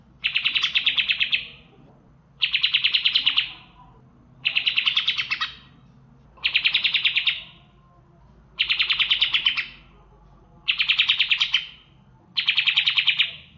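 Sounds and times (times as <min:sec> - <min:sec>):
bird singing fast rattling trilled phrases: 0:00.2 - 0:01.6, 0:02.4 - 0:03.7, 0:04.4 - 0:05.8, 0:06.4 - 0:07.6, 0:08.6 - 0:09.9, 0:10.7 - 0:13.5.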